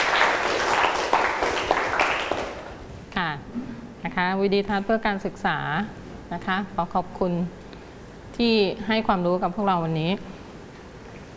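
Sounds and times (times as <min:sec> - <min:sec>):
students clapping: 0:00.0 - 0:02.8
speech: 0:04.2 - 0:07.6, 0:08.4 - 0:10.3.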